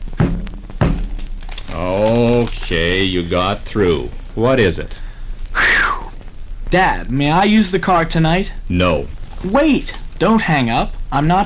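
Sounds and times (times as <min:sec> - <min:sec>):
dull heavy knocks like raps on wood: 0:00.2 - 0:01.2
speech: 0:01.8 - 0:05.0, 0:06.7 - 0:11.4.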